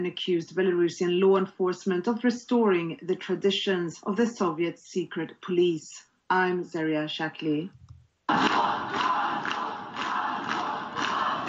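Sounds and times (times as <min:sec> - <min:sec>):
speech: 0:00.0 - 0:09.1
crowd gathered outside a jail shouting and chanting: 0:08.3 - 0:11.4.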